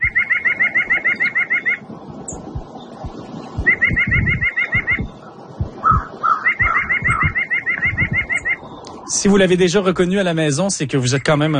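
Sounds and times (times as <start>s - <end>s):
white-breasted nuthatch call: 0.0s - 9.2s
speech: 9.2s - 11.5s.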